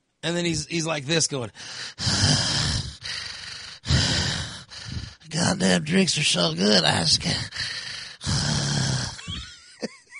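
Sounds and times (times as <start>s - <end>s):
speech: 0.2s - 2.4s, 5.5s - 7.8s
man imitating a drunk man's laboured raspy breathing: 1.5s - 5.5s, 6.6s - 9.5s.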